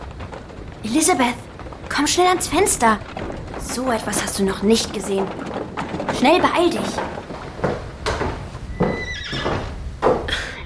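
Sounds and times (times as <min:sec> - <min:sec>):
clip-clop of hooves of a horse-drawn carriage arriving: 0:00.0 - 0:10.5
speech: 0:00.8 - 0:07.2
horse whinnying: 0:08.7 - 0:09.8.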